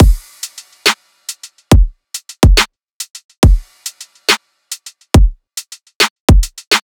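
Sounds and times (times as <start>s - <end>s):
riddim drum loop: 0.0s - 4.3s, 5.1s - 6.8s.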